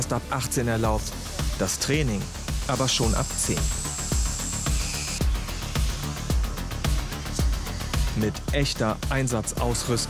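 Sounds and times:
speech: 0:00.0 - 0:03.8, 0:08.2 - 0:10.0
water spraying from a firefighting hydroshield: 0:00.7 - 0:08.3
deep thumping beat: 0:00.9 - 0:10.0.

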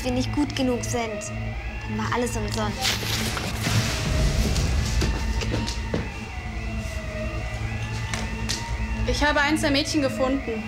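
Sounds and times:
speech: 0:00.0 - 0:03.8, 0:09.1 - 0:10.6
alarm set off by a fog machine: 0:00.0 - 0:10.6
dense rumbling background: 0:00.0 - 0:10.6
sharp thuds and knocks: 0:03.6 - 0:06.3.

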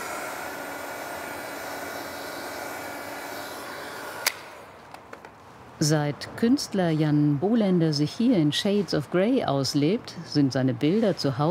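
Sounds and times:
hair dryer blowing: 0:00.0 - 0:04.8
speech: 0:05.8 - 0:11.4.

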